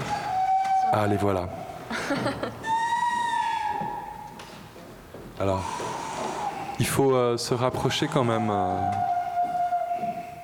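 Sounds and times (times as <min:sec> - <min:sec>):
handmade clay pottery whistle blown: 0:00.0 - 0:01.7, 0:02.6 - 0:04.3, 0:08.7 - 0:10.4
speech: 0:00.9 - 0:02.7, 0:05.4 - 0:05.8, 0:06.8 - 0:09.1
laughter: 0:01.9 - 0:02.7.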